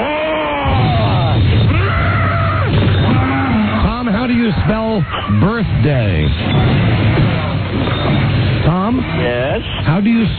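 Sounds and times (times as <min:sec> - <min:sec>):
person imitating a monster's birthday roar: 0:00.0 - 0:04.0
speech: 0:04.6 - 0:10.3.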